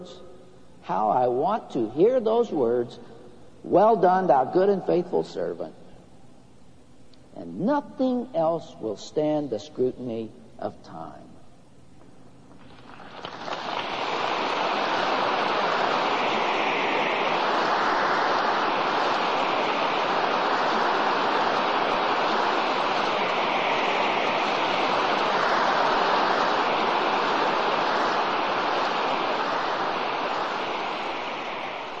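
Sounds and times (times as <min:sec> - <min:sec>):
speech: 0:00.0 - 0:05.8, 0:07.4 - 0:11.2
large crowd applauding and cheering: 0:12.6 - 0:31.9.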